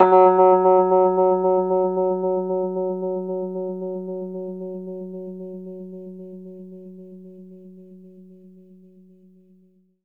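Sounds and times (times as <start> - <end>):
Rhodes electric piano playing fast in F-sharp: 0.0 - 4.6.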